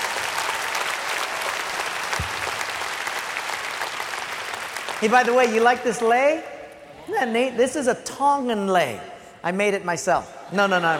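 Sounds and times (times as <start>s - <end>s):
audience applauding the graduates: 0.0s - 6.4s
speech: 5.0s - 6.5s, 7.1s - 10.9s.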